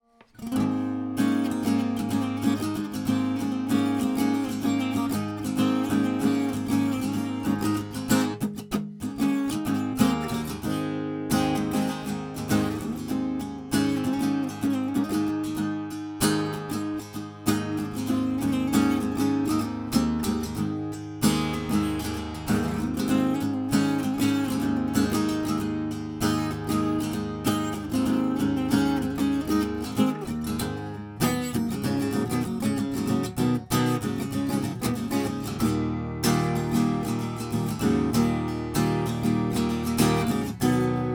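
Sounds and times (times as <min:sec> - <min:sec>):
acoustic guitar recorded direct input: 0:00.0 - 0:41.1.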